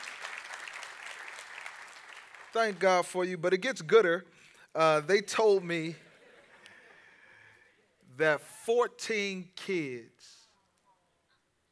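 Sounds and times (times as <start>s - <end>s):
crowd clapping: 0.0s - 3.2s
speech: 2.5s - 6.0s, 8.2s - 10.4s.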